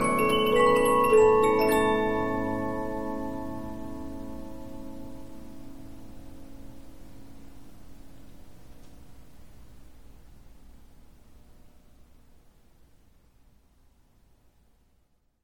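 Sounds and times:
15-inch Polyphon music box playing: 0.0 - 5.4.

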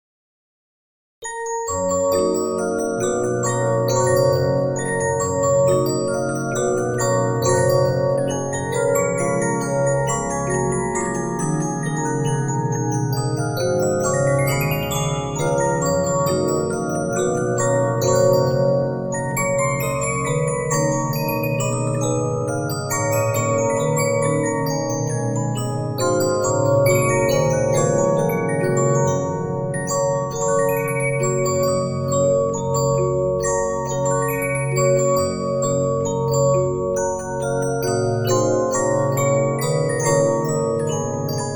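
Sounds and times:
Regina 15-inch disc music box: 1.2 - 41.5.

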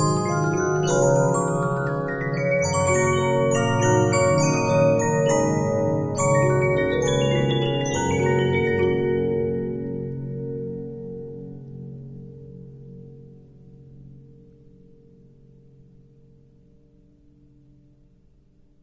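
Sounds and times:
Regina 15-inch disc music box: 0.0 - 9.8.

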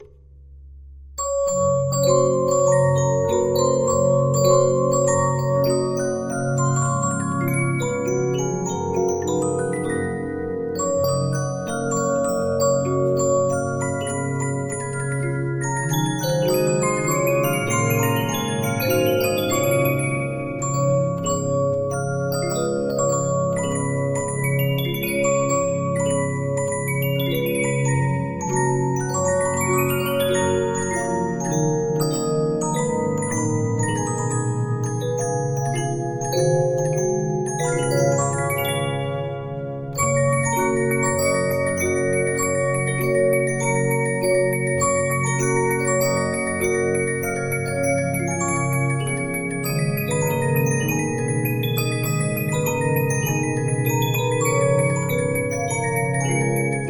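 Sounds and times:
Regina 15-inch disc music box: 1.2 - 56.8.

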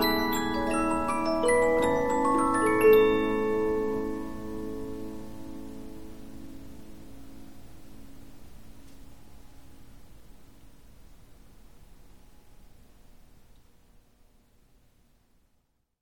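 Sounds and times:
Polyphon 15-inch disc music box playing: 0.0 - 5.6.

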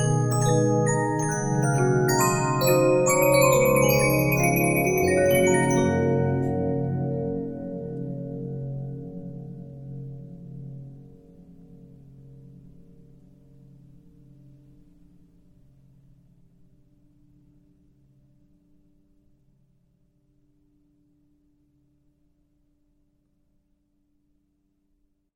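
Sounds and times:
Regina 15-inch disc music box: 0.0 - 7.3.

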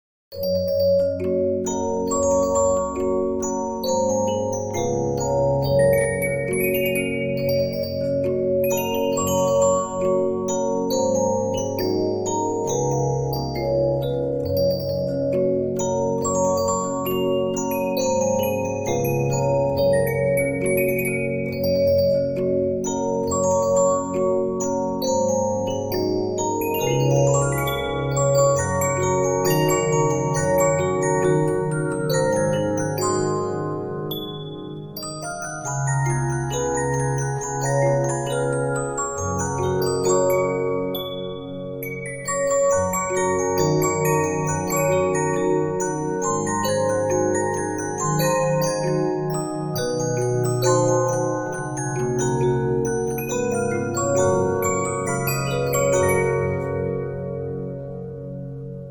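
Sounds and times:
Regina 15-inch disc music box: 0.3 - 58.8.

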